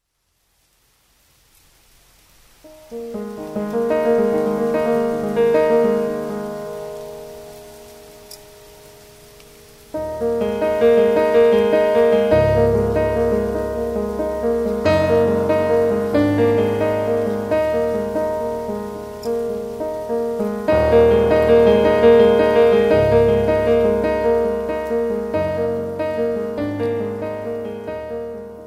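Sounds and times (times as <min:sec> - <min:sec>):
piano: 0:02.5 - 0:28.6.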